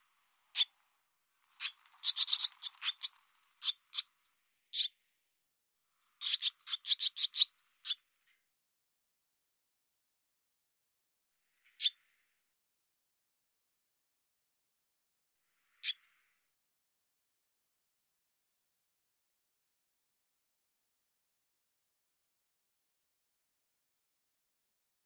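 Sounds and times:
Barn swallow calls: 0:00.0 - 0:00.8, 0:01.6 - 0:05.0, 0:06.2 - 0:08.0.

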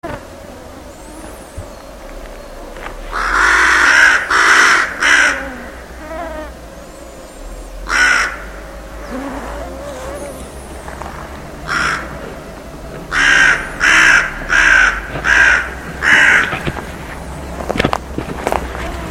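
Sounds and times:
bird calling with harsh raspy caws: 0:00.0 - 0:17.5.

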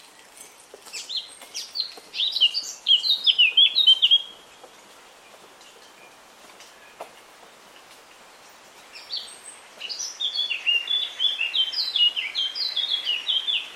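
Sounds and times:
Eurasian Blackcap song: 0:00.9 - 0:04.6, 0:08.4 - 0:13.7.

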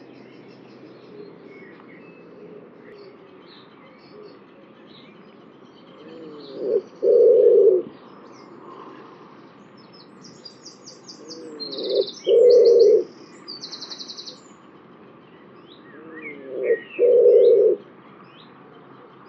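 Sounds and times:
small birds trilling: 0:00.0 - 0:19.2
bird cooing: 0:00.7 - 0:03.5, 0:06.0 - 0:07.9, 0:11.1 - 0:13.1, 0:16.0 - 0:17.8.

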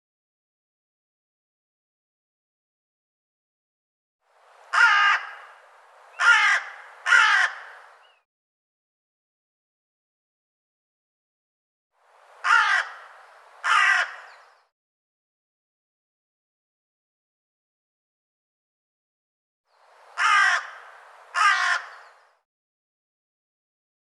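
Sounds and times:
bird cawing: 0:04.7 - 0:08.2, 0:12.4 - 0:14.7, 0:20.1 - 0:22.4.

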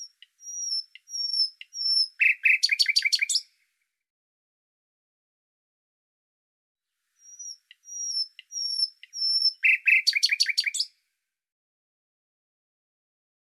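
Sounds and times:
bird song with thin high whistled downslurs: 0:00.0 - 0:03.5, 0:07.2 - 0:10.9.

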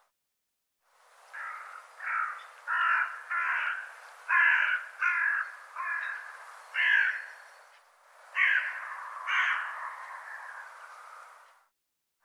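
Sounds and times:
bird calling with rough grating caws: 0:01.3 - 0:07.4, 0:08.3 - 0:11.5.

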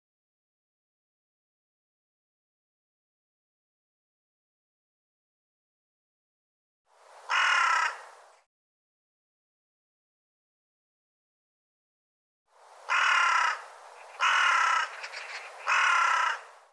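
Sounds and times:
bird harsh raspy caws: 0:07.3 - 0:08.2, 0:12.9 - 0:16.7.

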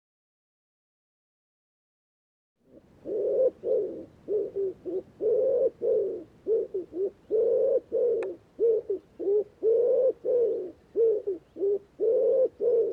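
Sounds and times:
bird cooing in low notes: 0:02.6 - 0:12.9.

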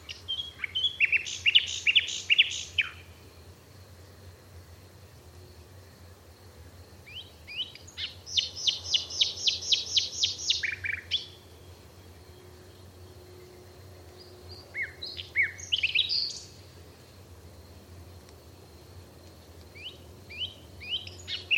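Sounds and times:
bird calls: 0:00.0 - 0:03.1, 0:07.1 - 0:16.8.

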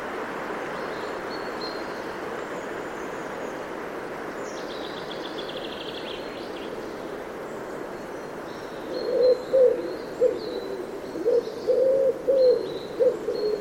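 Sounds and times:
bird cooing with soft low hollow notes: 0:08.8 - 0:13.5.

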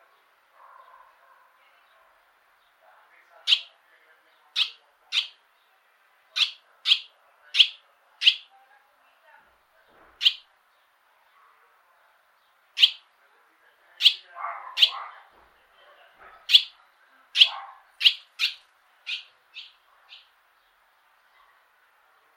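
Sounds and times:
bird chirping: 0:03.4 - 0:08.7, 0:09.8 - 0:13.1, 0:14.0 - 0:15.2, 0:16.2 - 0:22.3.

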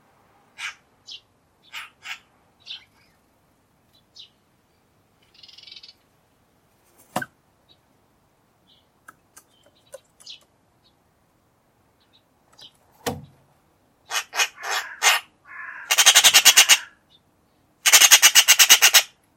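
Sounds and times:
harsh squawking bird calls: 0:00.6 - 0:03.2, 0:14.0 - 0:17.2, 0:17.8 - 0:19.2.

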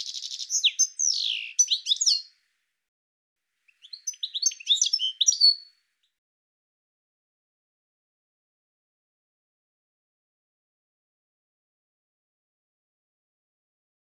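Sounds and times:
bird twittering chirps: 0:00.0 - 0:02.3, 0:03.7 - 0:05.7.

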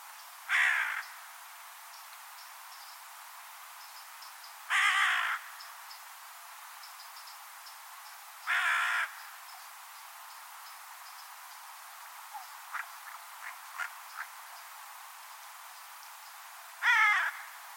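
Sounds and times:
bird cawing: 0:00.5 - 0:01.1, 0:04.7 - 0:05.5, 0:08.5 - 0:09.2, 0:16.8 - 0:17.6.

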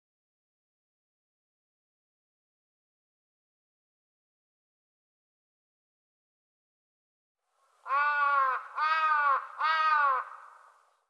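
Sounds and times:
bird cawing: 0:07.8 - 0:10.8.

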